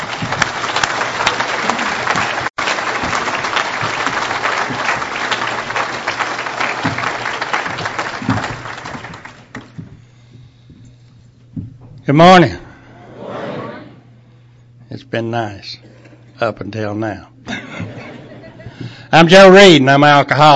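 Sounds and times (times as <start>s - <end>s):
audience applause: 0.0s - 9.7s
speech: 12.1s - 12.6s, 15.1s - 17.3s, 19.1s - 20.5s
laughter: 17.5s - 19.0s.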